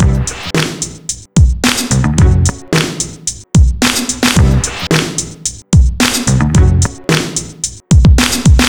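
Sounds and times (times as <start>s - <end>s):
hip-hop breakcore breakbeat at 110 BPM: 0.0s - 8.6s.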